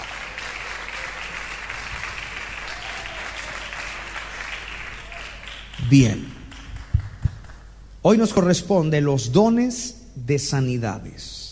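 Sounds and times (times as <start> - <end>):
audience applause: 0.0 - 7.7
speech: 5.9 - 6.3, 8.0 - 11.4.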